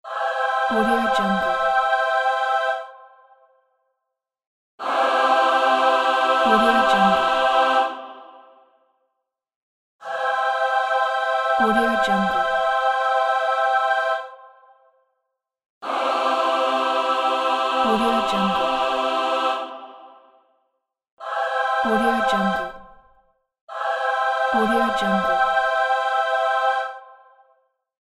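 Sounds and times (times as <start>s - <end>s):
heavenly angels music stinger: 0.1s - 3.1s, 4.8s - 8.6s, 10.0s - 14.6s, 15.8s - 20.4s, 21.2s - 22.9s, 23.7s - 27.3s.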